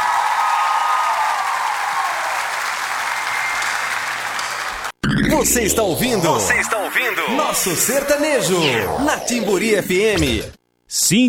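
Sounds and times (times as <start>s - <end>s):
audience applause for a sertanejo singer on a radio show: 0.0s - 5.0s
speech: 5.4s - 11.2s.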